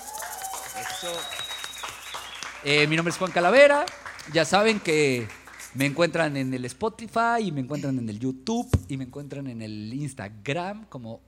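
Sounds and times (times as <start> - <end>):
loud whistles from live audience: 0.0 - 2.7
live audience applause: 0.0 - 5.8
speech: 0.8 - 1.6, 2.6 - 11.2.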